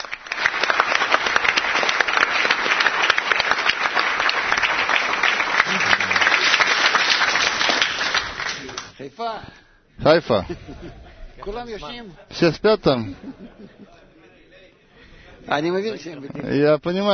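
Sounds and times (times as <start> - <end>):
audience applauding a group from Haifa at a gathering: 0.0 - 9.0
laughter: 5.6 - 6.8, 10.2 - 16.2
speech: 9.3 - 13.4, 15.5 - 17.1.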